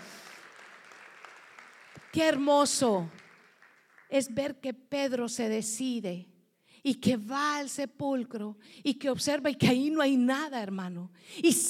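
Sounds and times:
audience applause: 0.0 - 2.4, 3.1 - 4.1
speech: 2.1 - 3.2, 4.1 - 11.6.

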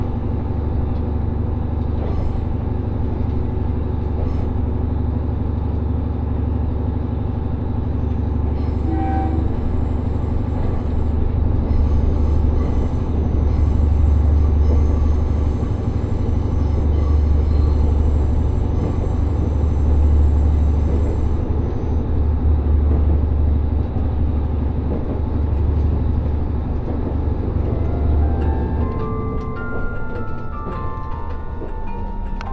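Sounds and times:
heavy low rumble of the Resort Shirakami No. 4 on the Gono Line: 0.0 - 32.5.

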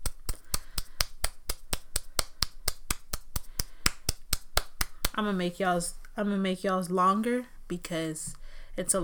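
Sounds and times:
audience applause in rhythmic clapping: 0.0 - 5.3
speech: 5.2 - 9.0.

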